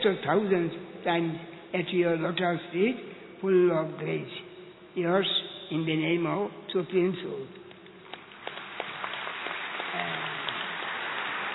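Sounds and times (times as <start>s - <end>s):
speech: 0.0s - 4.4s, 5.0s - 7.6s
loud applause: 8.4s - 11.5s.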